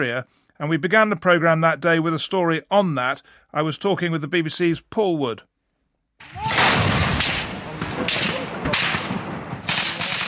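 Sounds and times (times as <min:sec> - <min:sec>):
speech: 0:00.0 - 0:05.5, 0:06.2 - 0:06.6
artillery from a battle between government and opposition forces in Homs, Syria: 0:06.2 - 0:10.2
gunfire from a battle in Homs, Syria: 0:06.3 - 0:10.2.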